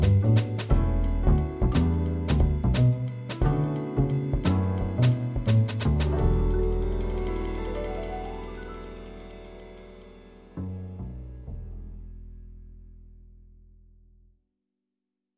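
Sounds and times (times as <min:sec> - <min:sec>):
MIDI jazz music: 0:00.0 - 0:11.0.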